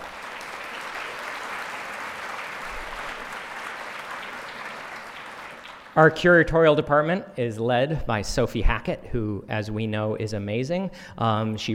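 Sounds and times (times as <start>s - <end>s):
lecture audience applause: 0.0s - 6.1s
speech: 6.0s - 11.7s.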